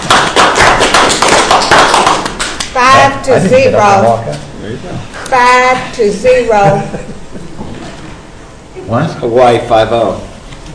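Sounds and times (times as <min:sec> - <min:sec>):
small group clapping after a vote: 0:00.0 - 0:02.9
speech: 0:02.8 - 0:07.1, 0:08.9 - 0:10.3
laughter: 0:06.5 - 0:07.8.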